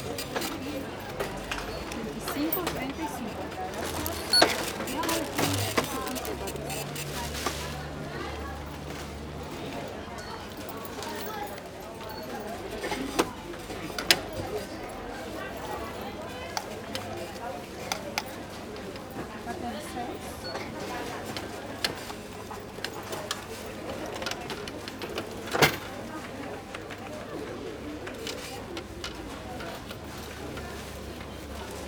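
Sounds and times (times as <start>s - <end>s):
coins clinking at a supermarket checkout: 0.0s - 7.3s
supermarket cash register: 0.0s - 7.7s
people talking in Spanish in a supermarket: 0.0s - 31.8s
items being bagged at a supermarket checkout: 1.9s - 8.0s.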